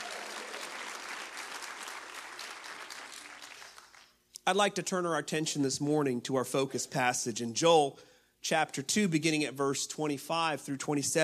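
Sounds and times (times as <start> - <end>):
audience clapping hands: 0.0 - 4.2
speech: 4.5 - 11.2.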